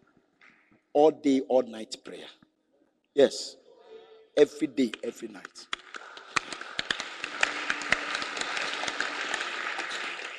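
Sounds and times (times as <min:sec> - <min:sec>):
speech: 0:01.0 - 0:02.4, 0:03.2 - 0:03.6, 0:04.4 - 0:05.8
audience clapping: 0:04.7 - 0:10.3.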